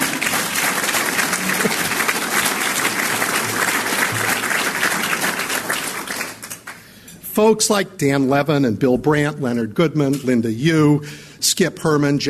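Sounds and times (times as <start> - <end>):
audience applause: 0.0 - 6.9
speech: 7.4 - 12.2.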